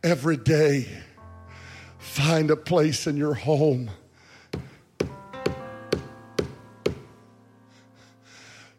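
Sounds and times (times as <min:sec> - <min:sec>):
speech: 0:00.0 - 0:01.0, 0:02.0 - 0:04.0
firm knocks on wood: 0:04.5 - 0:07.1.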